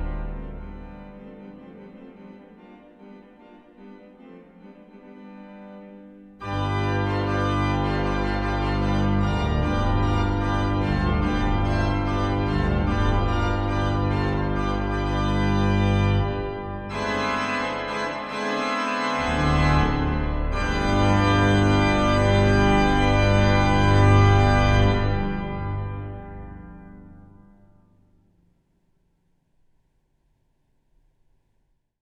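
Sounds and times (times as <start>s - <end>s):
organ fanfare: 0.0s - 3.9s, 5.9s - 27.5s.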